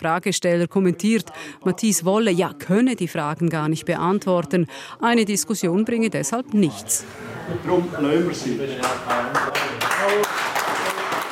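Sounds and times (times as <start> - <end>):
speech: 0.0 - 10.2
audience applause at a public hunting debate in Schiers, Switzerland: 8.8 - 11.2.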